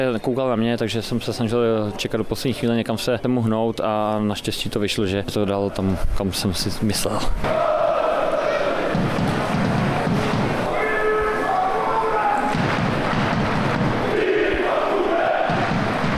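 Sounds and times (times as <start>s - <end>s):
speech: 0.0s - 7.8s
stadium crowd roar: 7.3s - 16.1s
football fans chanting players' names: 7.4s - 16.1s
thuds: 8.8s - 10.7s, 12.5s - 14.2s, 15.4s - 16.1s.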